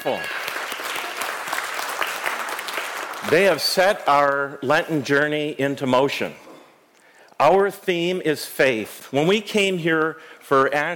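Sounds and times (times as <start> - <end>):
speech: 0.0 - 0.4, 3.2 - 6.4, 7.4 - 10.9
audience applause: 0.0 - 3.6.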